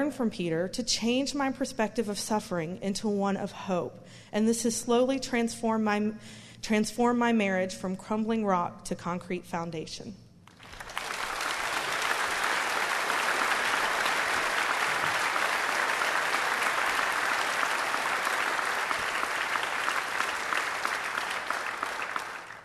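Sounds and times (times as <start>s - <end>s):
speech: 0.0s - 10.2s
long audience applause: 10.5s - 22.6s.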